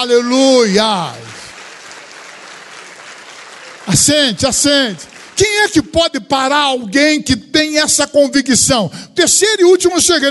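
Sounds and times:
speech: 0:00.0 - 0:01.3, 0:03.9 - 0:10.2
audience at a Methodist church service applauding: 0:00.7 - 0:06.0.

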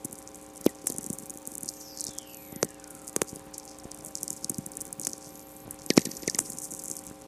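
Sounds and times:
sferics crackling: 0:00.0 - 0:07.2
radio whistler: 0:00.7 - 0:07.0.

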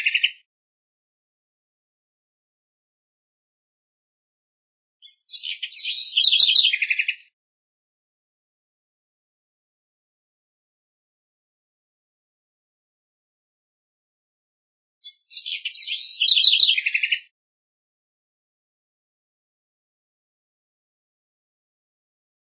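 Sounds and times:
house wren singing: 0:00.0 - 0:00.4, 0:05.0 - 0:07.3, 0:15.0 - 0:17.3.

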